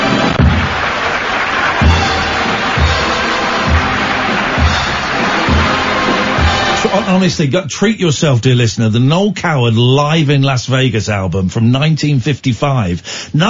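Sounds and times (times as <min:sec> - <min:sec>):
rhythmic low thumps: 0:00.0 - 0:01.0, 0:01.8 - 0:07.5
live audience roaring and applauding: 0:00.0 - 0:07.4
speech: 0:07.0 - 0:13.4.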